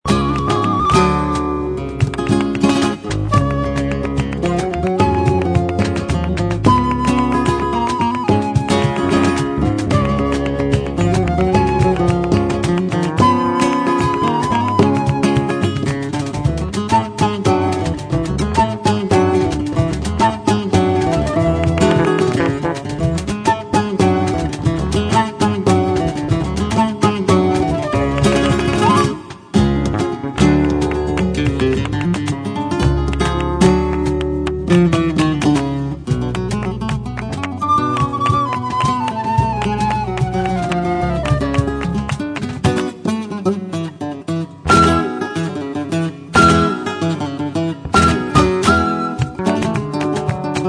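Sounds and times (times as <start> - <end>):
flamenco guitar: 0.0 - 50.6.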